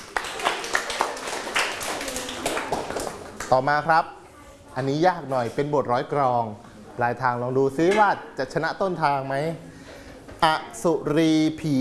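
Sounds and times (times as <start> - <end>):
audience clapping: 0.0 - 3.6
speech: 3.5 - 4.2, 4.8 - 9.7, 10.4 - 11.7.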